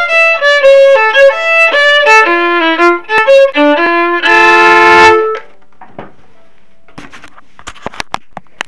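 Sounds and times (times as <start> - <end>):
two-part polska folk tune in major and minor: 0.0 - 5.6.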